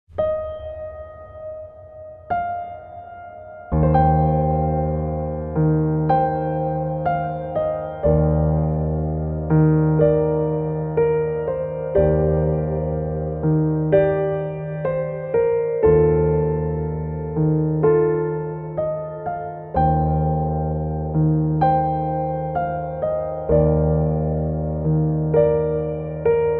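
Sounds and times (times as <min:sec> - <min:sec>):
solo piano: 0:00.1 - 0:26.5.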